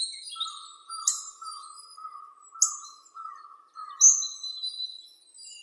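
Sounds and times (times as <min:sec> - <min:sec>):
hawfinch Coccothraustes coccothraustes calling: 0:00.4 - 0:04.4.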